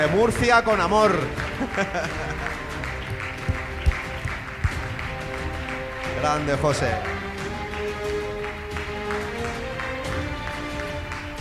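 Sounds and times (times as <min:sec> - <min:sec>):
speech: 0:00.0 - 0:02.6, 0:06.2 - 0:07.2
audience applause: 0:01.2 - 0:11.3
laughter: 0:01.4 - 0:04.4
low thumps: 0:01.4 - 0:06.2.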